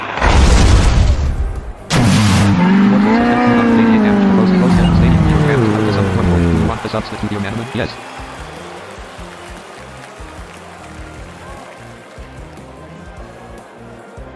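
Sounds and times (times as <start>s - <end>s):
Psycho Trick move effect booming rumble in a monster-battle video game: 0.2s - 6.8s
speech: 7.0s - 8.2s.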